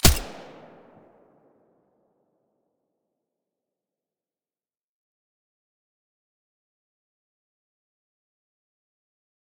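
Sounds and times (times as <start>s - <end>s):
MDR rifle gunshots with silencer: 0.0s - 1.3s.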